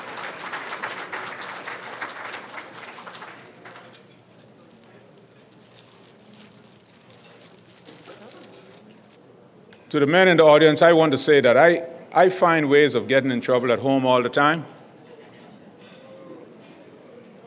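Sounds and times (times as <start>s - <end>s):
audience applause: 0.0s - 4.0s
speech: 9.9s - 14.8s.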